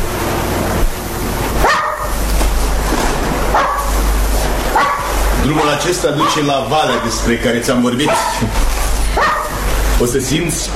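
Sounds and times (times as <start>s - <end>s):
steady rushing noise: 0.0s - 10.7s
small dog barking: 1.6s - 2.2s, 3.5s - 4.0s, 4.7s - 7.3s, 8.0s - 8.5s, 9.1s - 9.6s
speech: 5.8s - 8.8s, 10.0s - 10.7s.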